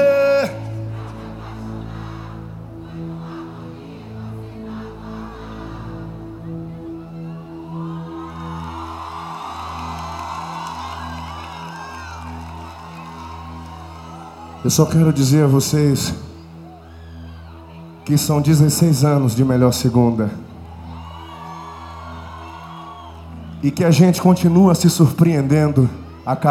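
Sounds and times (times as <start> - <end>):
stadium crowd singing: 0.0 - 6.8
crowd cheering: 0.0 - 15.7, 20.5 - 24.6
speech: 14.6 - 16.3, 18.1 - 20.5, 23.6 - 26.5.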